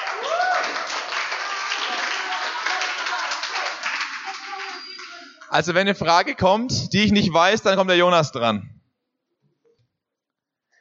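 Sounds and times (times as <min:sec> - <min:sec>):
applause: 0:00.0 - 0:06.0
speech: 0:05.5 - 0:08.8.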